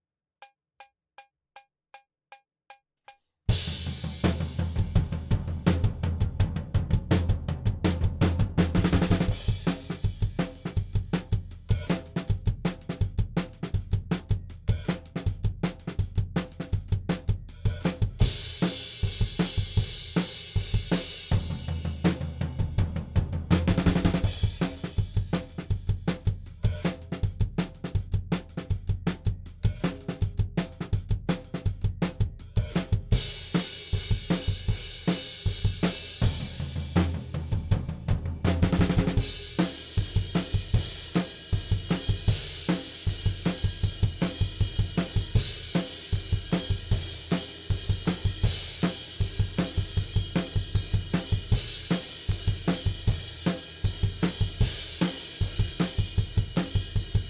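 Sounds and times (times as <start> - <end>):
drums: 3.1 - 57.2.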